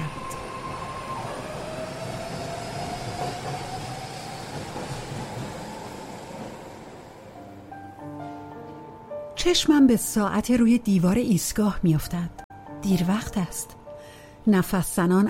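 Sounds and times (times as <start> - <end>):
Paris express train rumbling into a station: 0.0 - 9.2
speech: 9.4 - 13.8, 14.4 - 15.2.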